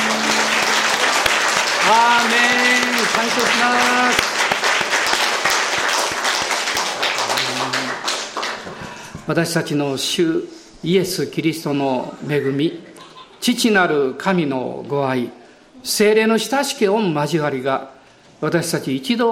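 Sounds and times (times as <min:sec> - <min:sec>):
audience applause: 0:00.0 - 0:09.0
speech: 0:01.9 - 0:04.3, 0:09.3 - 0:19.3.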